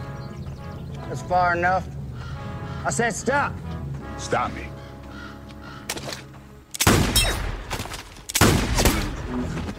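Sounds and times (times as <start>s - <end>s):
speech: 1.1s - 2.0s, 2.8s - 4.7s
gunshots during target shooting: 6.8s - 9.5s.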